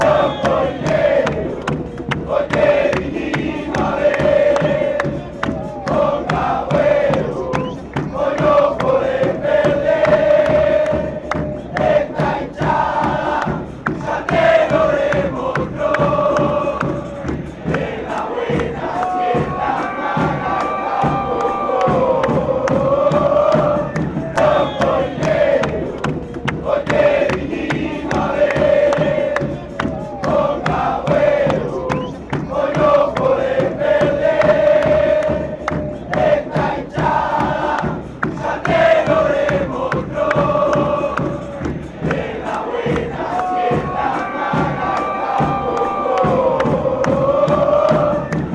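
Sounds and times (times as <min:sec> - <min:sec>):
people chanting: 0:00.0 - 0:48.5.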